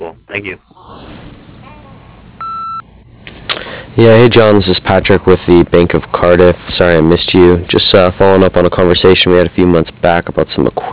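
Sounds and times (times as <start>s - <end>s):
faint noisy background: 0.0s - 10.9s
speech: 0.4s - 0.8s, 4.0s - 10.9s
answering machine tone before recording a message: 2.4s - 2.8s.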